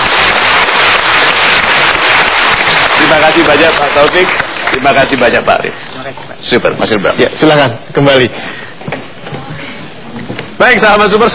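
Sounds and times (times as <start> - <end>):
audience applause: 0.0 - 5.7
speech: 3.1 - 9.0, 10.6 - 11.3.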